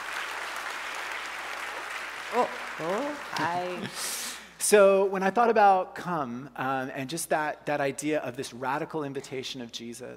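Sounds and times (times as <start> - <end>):
audience applause welcoming a speaker on stage: 0.0 - 4.1
speech: 2.3 - 10.1.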